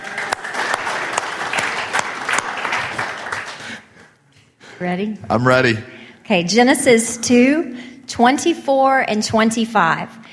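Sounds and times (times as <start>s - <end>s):
audience applause at a morning service: 0.0s - 3.9s
speech: 4.8s - 10.2s.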